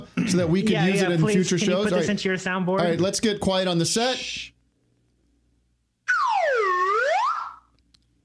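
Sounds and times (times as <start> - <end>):
speech: 0.3 - 4.6
whistle blown: 6.1 - 7.7.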